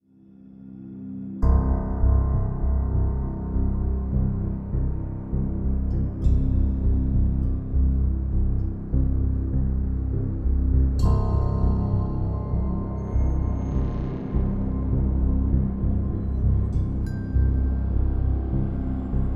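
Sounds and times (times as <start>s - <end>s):
music: 0.0s - 19.3s.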